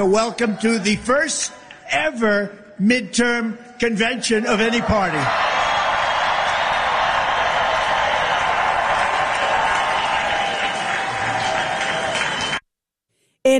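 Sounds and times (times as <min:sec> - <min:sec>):
speech: 0:00.0 - 0:05.6
crowd roaring and applauding at convention: 0:04.4 - 0:12.6.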